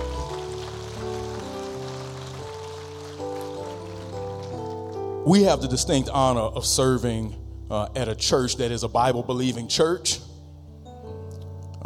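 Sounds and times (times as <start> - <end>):
crowd applause: 0.0 - 5.0
sustained organ chords: 0.0 - 11.8
speech: 5.2 - 10.3.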